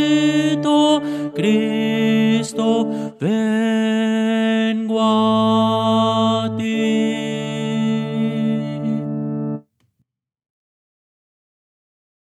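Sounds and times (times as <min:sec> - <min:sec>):
tenor singing: 0:00.0 - 0:09.6.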